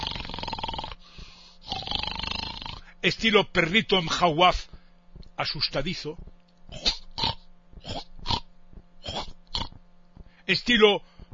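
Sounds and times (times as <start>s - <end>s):
voice imitating snoring in a classic pig style: 0.0s - 3.0s, 6.7s - 9.8s
speech: 3.0s - 4.7s, 5.4s - 6.9s, 10.5s - 11.1s.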